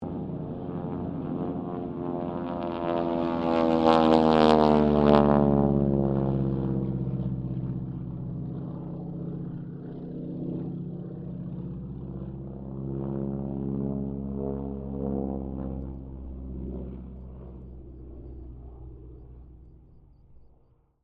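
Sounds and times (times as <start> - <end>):
Harvard squadron aircraft pass: 0.0 - 20.8.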